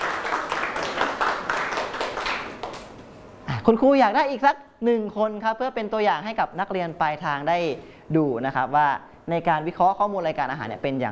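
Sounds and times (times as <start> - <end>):
students applauding: 0.0 - 3.0
speech: 3.7 - 11.1.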